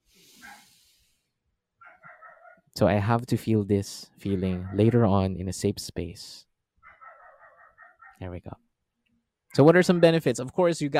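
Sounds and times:
soft breathy hiss: 0.0s - 1.3s
dog barking: 0.4s - 0.7s, 1.8s - 2.6s, 4.6s - 5.1s, 6.8s - 8.2s
speech: 2.8s - 6.5s, 8.2s - 8.6s, 9.5s - 10.9s.

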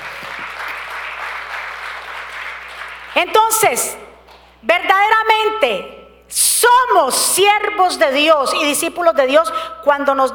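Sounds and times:
audience applauding: 0.0s - 3.2s
speech: 3.2s - 10.3s.

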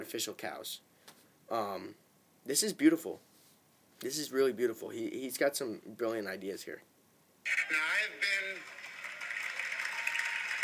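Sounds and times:
speech: 0.0s - 0.9s, 1.5s - 3.3s, 4.0s - 8.8s
audience applause: 7.5s - 10.6s.

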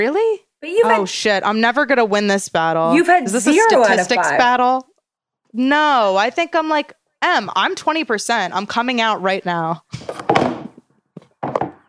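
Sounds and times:
speech: 0.0s - 4.9s, 5.5s - 10.2s
phone falling onto a hard surface: 10.0s - 11.8s.

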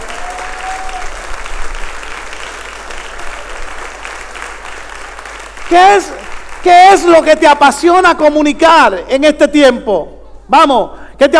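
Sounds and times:
audience clapping: 0.0s - 8.0s
speech: 5.7s - 11.3s.

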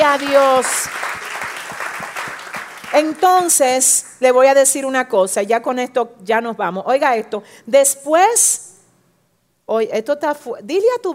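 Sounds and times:
audience applause: 0.0s - 3.2s
speech: 0.1s - 1.2s, 3.0s - 8.7s, 9.7s - 11.1s.

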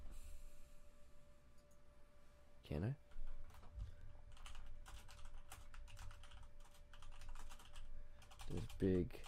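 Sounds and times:
speech: 2.7s - 3.0s, 8.5s - 9.2s
typing on a computer keyboard: 3.2s - 3.7s, 4.3s - 9.2s.

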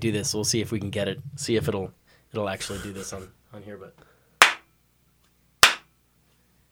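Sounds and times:
speech: 0.0s - 4.1s
hand clap: 4.4s - 4.6s, 5.6s - 5.9s.

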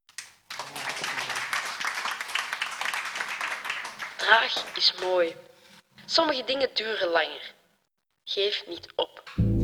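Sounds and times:
audience applause: 0.2s - 5.3s
speech: 4.2s - 5.5s, 6.1s - 7.6s, 8.3s - 9.5s.

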